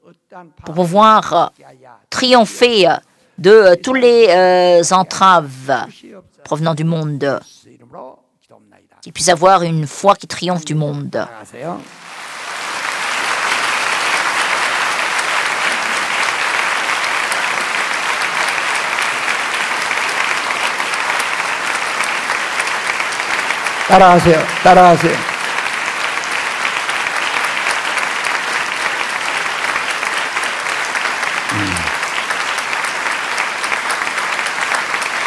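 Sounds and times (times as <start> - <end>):
speech: 0.3 - 8.2, 9.0 - 12.0, 23.9 - 25.3
crowd applause: 11.8 - 35.2
brief voice-like sounds: 31.4 - 32.0.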